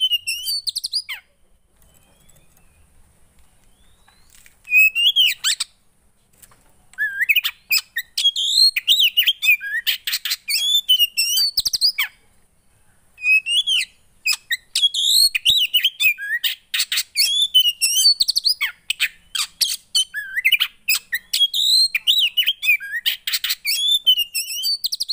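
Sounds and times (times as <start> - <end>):
Oriental magpie-robin song with whistles, trills and buzzy rasps: 0.0 - 3.0, 3.6 - 5.8, 7.0 - 12.2, 13.2 - 25.1.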